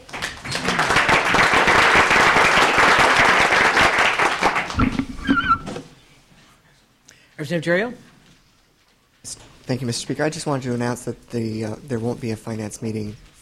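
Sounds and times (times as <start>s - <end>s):
legislative chamber clapping to welcome a young city councilman: 0.0s - 5.5s
speech: 7.5s - 8.1s, 9.2s - 13.3s.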